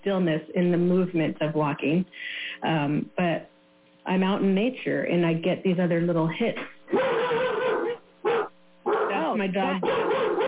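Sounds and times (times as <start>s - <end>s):
speech: 0.0s - 7.1s, 9.4s - 10.1s
dog barking: 6.9s - 10.4s.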